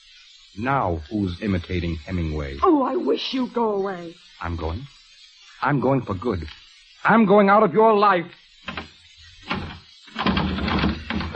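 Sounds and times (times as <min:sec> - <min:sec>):
speech: 0:00.5 - 0:05.0, 0:05.6 - 0:08.9
bolted door rattled and pulled: 0:08.6 - 0:11.3.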